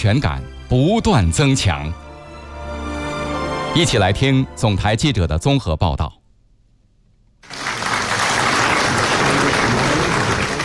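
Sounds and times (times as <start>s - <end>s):
speech: 0.0s - 2.0s, 3.7s - 6.2s
large crowd applause in a great hall: 7.4s - 10.6s.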